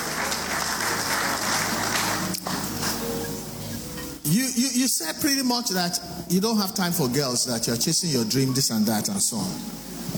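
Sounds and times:
audience clapping: 0.0 - 3.0
speech: 4.7 - 10.0.

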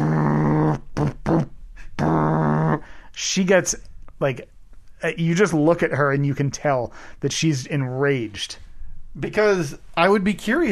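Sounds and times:
voice imitating a loud truck engine: 0.0 - 2.9
speech: 3.2 - 10.6.

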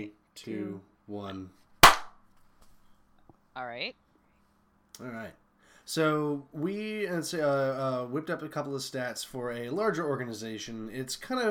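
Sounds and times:
speech: 0.0 - 1.6, 3.6 - 4.0, 5.0 - 11.4
single hand clap for sync: 1.8 - 2.2.

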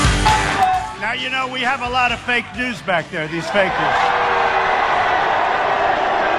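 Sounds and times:
large rally crowd cheering: 0.2 - 1.2, 2.2 - 6.3
speech: 1.7 - 4.4.

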